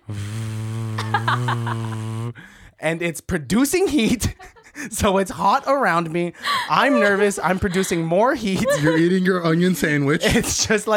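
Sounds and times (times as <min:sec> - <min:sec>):
voice imitating a loud laptop fan: 0:00.0 - 0:02.5
breathy hissing puffs: 0:00.0 - 0:02.8
laughter: 0:01.0 - 0:02.2, 0:04.0 - 0:05.0, 0:06.4 - 0:10.6
speech: 0:01.3 - 0:10.9.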